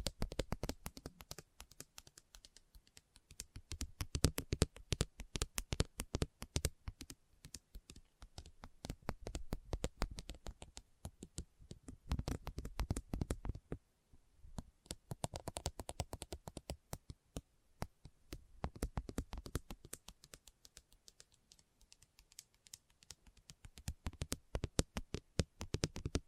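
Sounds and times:
rapid tapping and clicking on hard surfaces: 0.0s - 13.8s, 14.6s - 26.2s.

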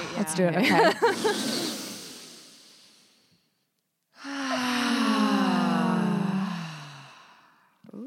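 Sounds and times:
deep breath taken together: 1.0s - 3.4s, 4.2s - 7.7s
long voiced sigh sliding downward: 4.2s - 7.7s.

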